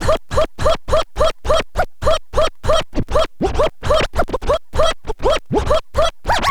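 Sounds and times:
vinyl scratches mix: 0:00.0 - 0:06.4.

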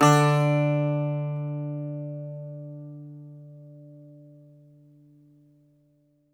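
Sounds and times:
Greek bazouki plucked strings: 0:00.0 - 0:04.9.

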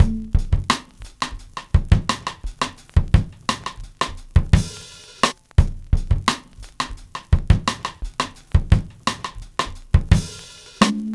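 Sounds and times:
drum break loop: 0:00.0 - 0:11.1.

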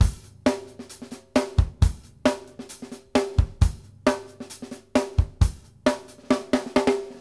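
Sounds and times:
drum loop: 0:00.0 - 0:05.6.

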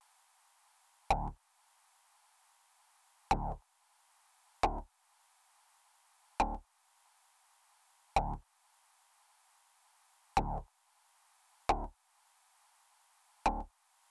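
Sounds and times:
bass: 0:01.1 - 0:01.4, 0:03.3 - 0:03.6, 0:04.6 - 0:04.9, 0:06.4 - 0:06.6, 0:08.2 - 0:08.4, 0:10.4 - 0:10.7, 0:11.7 - 0:11.9, 0:13.5 - 0:13.7.

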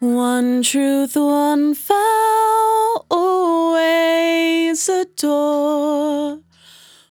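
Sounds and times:
velvet vocal in B minor: 0:00.0 - 0:07.1.

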